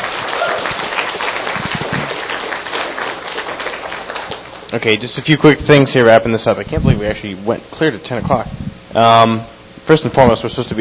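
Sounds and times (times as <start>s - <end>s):
audience applause: 0.0s - 4.7s
speech: 4.7s - 10.7s.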